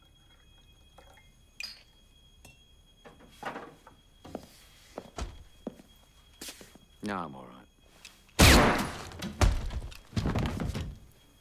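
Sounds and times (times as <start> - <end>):
speech: 7.0 - 7.6
pistol gunshot from a handgun: 8.4 - 10.0
heavy thuds: 8.4 - 11.2.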